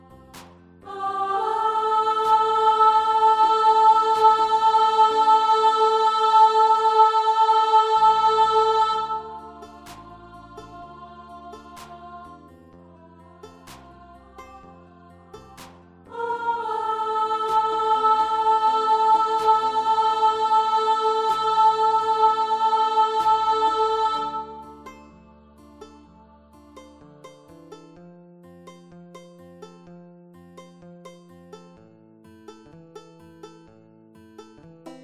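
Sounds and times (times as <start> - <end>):
descant melody: 0.8 - 12.4, 13.3 - 27.7, 34.9 - 35.0.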